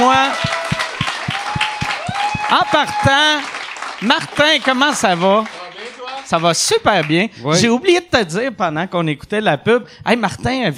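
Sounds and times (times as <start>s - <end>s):
audience applause: 0.0s - 7.3s
speech: 2.5s - 5.6s, 6.3s - 10.7s.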